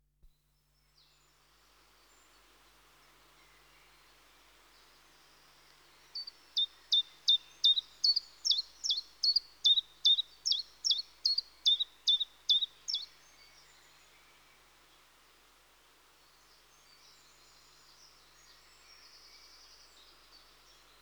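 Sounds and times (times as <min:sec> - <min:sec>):
common chiffchaff song: 0:06.1 - 0:13.1.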